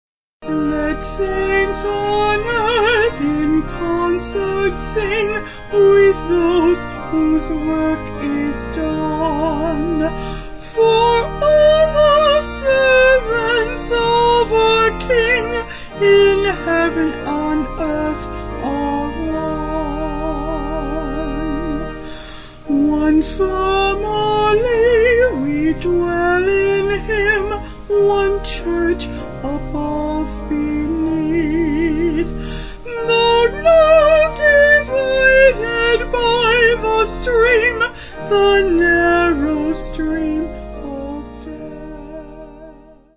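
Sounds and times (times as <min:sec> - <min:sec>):
vocal organ: 0:00.4 - 0:43.1.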